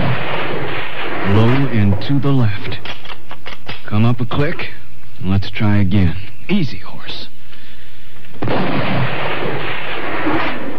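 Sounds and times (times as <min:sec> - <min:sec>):
rifle shot: 0:00.0 - 0:03.9, 0:08.4 - 0:10.7
speech: 0:02.0 - 0:03.0, 0:03.9 - 0:07.3.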